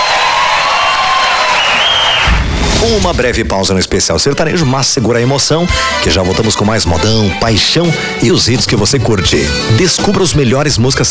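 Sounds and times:
crowd applause at a sertanejo music concert recorded for a DVD: 0:00.0 - 0:03.0
speech: 0:02.8 - 0:11.1.

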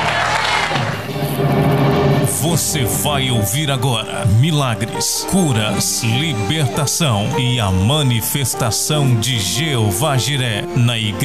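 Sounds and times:
audience applauding: 0:00.0 - 0:01.1
cheering: 0:00.0 - 0:01.1
speech: 0:02.4 - 0:11.2.

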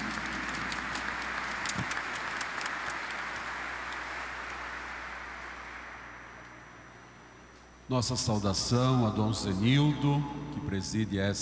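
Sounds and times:
audience applause: 0:00.0 - 0:06.7
speech: 0:07.9 - 0:11.3.

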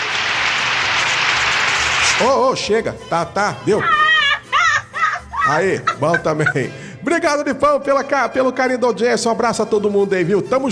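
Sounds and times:
crowd applause: 0:00.0 - 0:02.2
speech: 0:02.2 - 0:04.0, 0:05.5 - 0:10.7
laughter: 0:03.5 - 0:06.9.

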